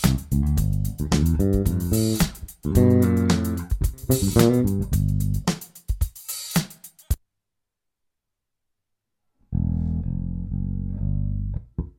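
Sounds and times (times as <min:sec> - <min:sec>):
bluesy bassline in G7: 0:00.0 - 0:05.5, 0:09.5 - 0:11.9.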